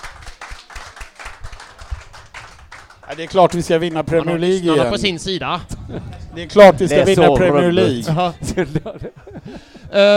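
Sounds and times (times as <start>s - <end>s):
audience applauding: 0.0s - 4.7s
speech: 3.1s - 10.1s
laughter: 5.7s - 10.1s.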